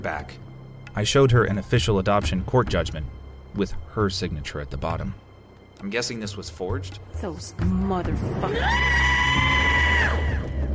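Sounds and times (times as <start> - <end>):
speech: 0.0 - 0.4, 1.0 - 5.2, 5.8 - 9.6
woman screaming: 8.4 - 10.6.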